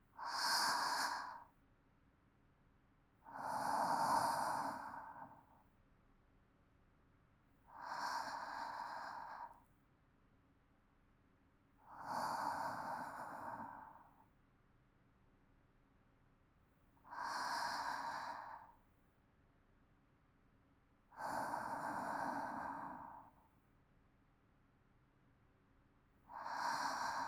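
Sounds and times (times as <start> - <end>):
calm sleep breathing: 0.1 - 1.6, 3.2 - 5.7, 7.7 - 9.7, 11.8 - 14.3, 17.0 - 18.9, 21.1 - 23.5, 26.2 - 27.2.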